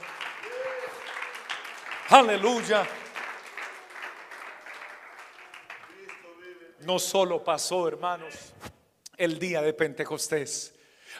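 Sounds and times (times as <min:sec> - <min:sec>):
audience applauding: 0:00.0 - 0:06.8
speech: 0:02.1 - 0:03.0, 0:06.9 - 0:08.6, 0:09.2 - 0:10.8.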